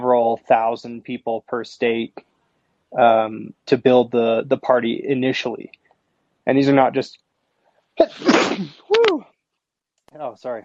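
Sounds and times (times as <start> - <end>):
speech: 0.4 - 2.3, 2.9 - 5.8, 6.4 - 7.2, 8.0 - 9.3, 10.1 - 10.6
person sneezing: 8.0 - 9.2.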